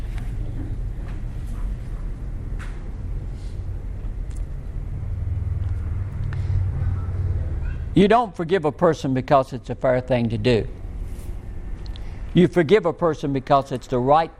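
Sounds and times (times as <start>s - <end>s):
train passing by: 0.0s - 14.3s
speech: 8.0s - 10.8s, 12.4s - 14.3s.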